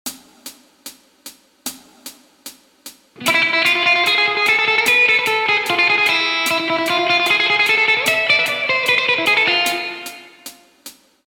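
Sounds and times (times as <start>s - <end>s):
guitar licks: 3.2s - 10.6s.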